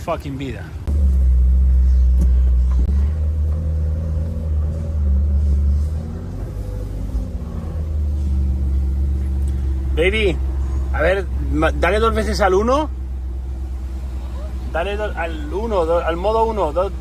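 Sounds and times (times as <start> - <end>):
speech: 0.0 - 0.8, 10.0 - 13.0, 14.7 - 16.9
sports car engine revving: 0.8 - 16.9.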